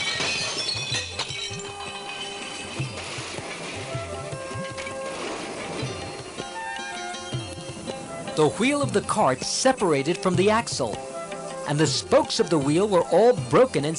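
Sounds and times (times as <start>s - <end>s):
metal dishes and brass utensils crashing: 0.0s - 3.9s
speech: 8.4s - 11.1s, 11.7s - 13.9s.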